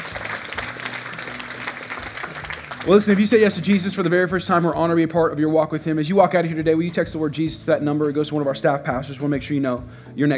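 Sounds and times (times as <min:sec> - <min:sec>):
audience hand clapping: 0:00.0 - 0:04.1
speech: 0:02.8 - 0:10.3.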